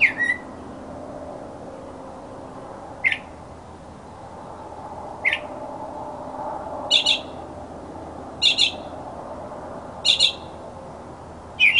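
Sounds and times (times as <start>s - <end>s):
mockingbird song: 0.0s - 0.4s, 3.0s - 3.3s, 6.9s - 7.3s, 8.4s - 8.8s, 10.0s - 10.4s, 11.6s - 11.7s.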